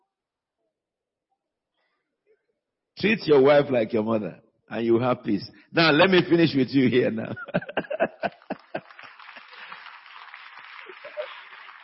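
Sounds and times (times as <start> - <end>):
speech: 2.4 - 7.8
laughter: 5.8 - 11.7
women clapping: 7.8 - 11.8.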